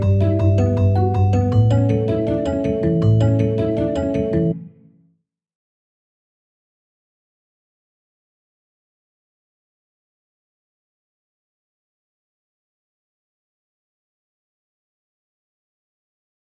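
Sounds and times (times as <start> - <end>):
pop music: 0.0 - 4.5.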